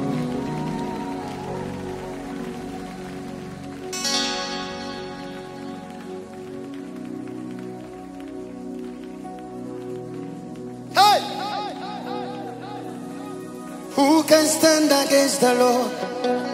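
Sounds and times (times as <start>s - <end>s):
audience clapping: 0.0s - 15.0s
speech: 14.3s - 16.4s.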